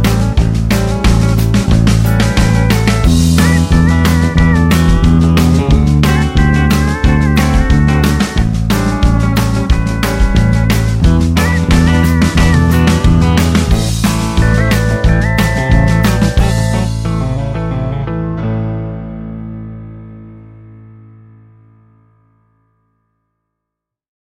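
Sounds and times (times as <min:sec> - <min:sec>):
bass playing quarter notes at 90 BPM: 0:00.0 - 0:21.8.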